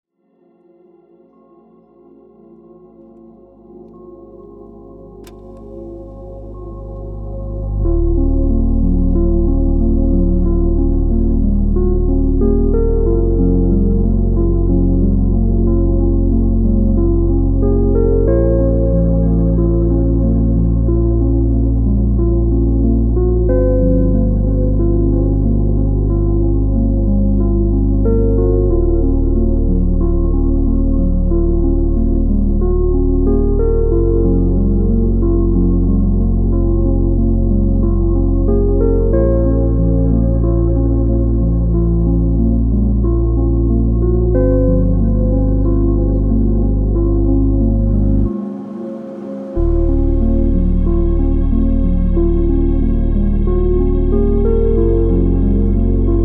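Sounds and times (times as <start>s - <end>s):
slowed reverb music: 1.2s - 56.2s.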